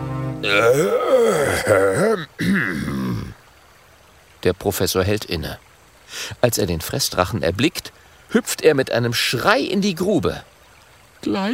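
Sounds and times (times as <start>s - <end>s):
speech: 0.4s - 3.3s, 4.4s - 10.5s, 11.2s - 11.5s
throat clearing: 0.5s - 3.3s.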